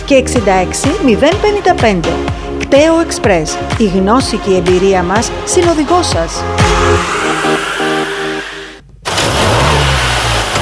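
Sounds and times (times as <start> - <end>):
speech: 0.1 - 7.7
car engine revving and accelerating with a deep low rumble: 5.3 - 10.6.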